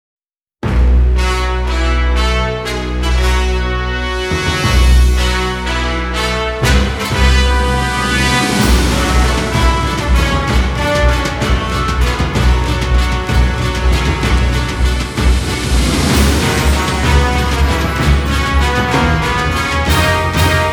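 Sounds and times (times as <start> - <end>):
fanfare at Honolulu Racecourse: 1.0 - 20.7.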